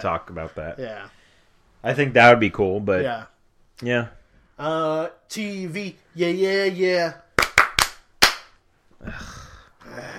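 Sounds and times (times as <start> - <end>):
speech: 0.0 - 1.2, 1.8 - 7.2, 9.0 - 9.4
hand claps: 7.3 - 8.6.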